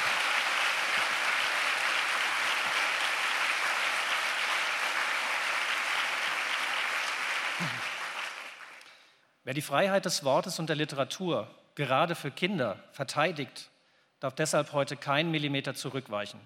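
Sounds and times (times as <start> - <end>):
audience applause at a speech: 0.0 - 8.9
speech: 9.5 - 16.4.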